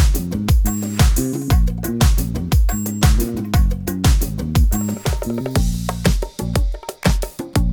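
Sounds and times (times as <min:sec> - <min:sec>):
Persian music in six-eight time: 0:00.0 - 0:07.6.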